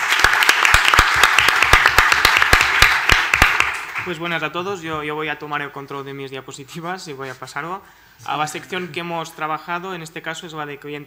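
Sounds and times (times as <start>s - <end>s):
audience applause: 0.0s - 4.1s
speech: 4.1s - 11.0s.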